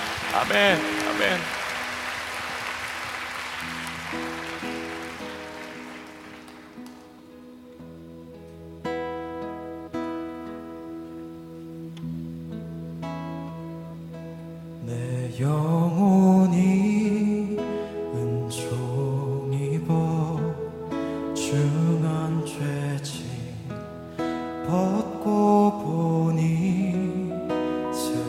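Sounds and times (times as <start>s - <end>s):
crowd clapping: 0.0s - 7.2s
organ-like keyboard chords: 0.0s - 28.2s
speech: 0.4s - 1.6s, 3.6s - 4.4s.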